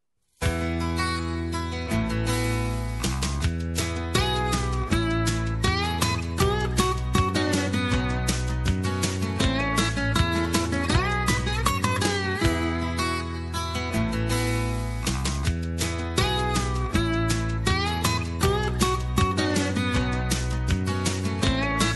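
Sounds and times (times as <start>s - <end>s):
acoustic country bluegrass ballad: 0.4s - 21.9s.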